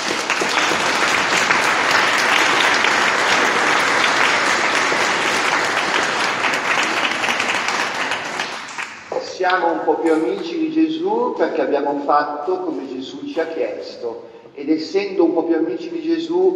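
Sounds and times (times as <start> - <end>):
audience applause: 0.0 - 9.2
speech: 9.4 - 16.5.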